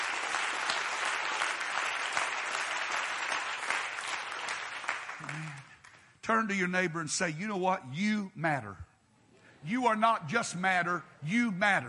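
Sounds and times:
audience clapping: 0.0s - 6.2s
speech: 6.3s - 8.9s, 9.6s - 11.8s.

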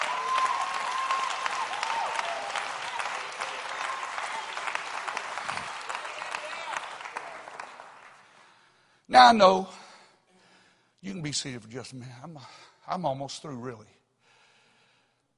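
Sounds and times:
audience clapping: 0.0s - 8.8s
speech: 9.1s - 9.8s, 11.0s - 14.0s.

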